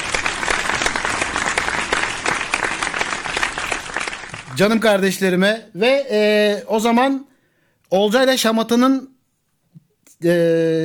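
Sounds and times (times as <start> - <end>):
applause sound effect: 0.0 - 4.9
speech: 4.6 - 7.3, 7.9 - 9.1, 10.2 - 10.8.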